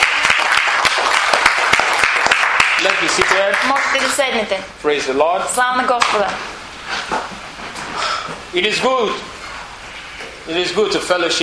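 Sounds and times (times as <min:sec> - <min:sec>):
audience clapping: 0:00.0 - 0:04.3
speech: 0:02.8 - 0:06.6, 0:08.5 - 0:09.3, 0:10.4 - 0:11.4.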